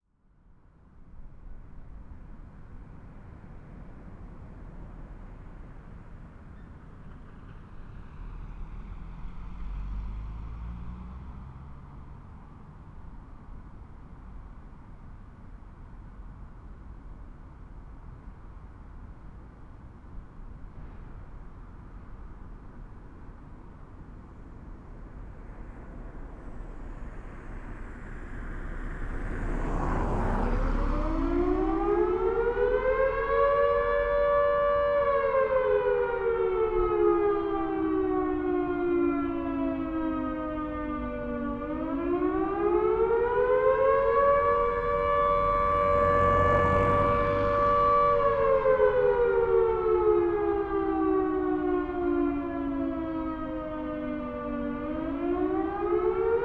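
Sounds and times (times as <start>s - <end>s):
siren: 23.8s - 56.4s.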